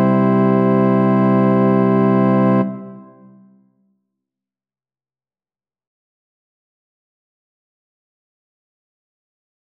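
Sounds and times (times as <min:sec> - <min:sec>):
organ: 0:00.0 - 0:03.2.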